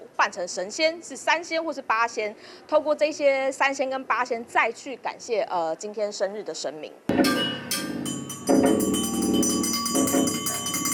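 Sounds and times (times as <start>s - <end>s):
speech: 0.2s - 7.5s
spoon striking iron wok: 7.1s - 10.9s.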